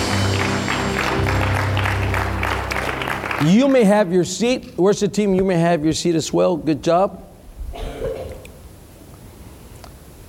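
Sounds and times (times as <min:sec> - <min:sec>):
audience applause: 0:00.0 - 0:04.2
speech: 0:03.4 - 0:07.3.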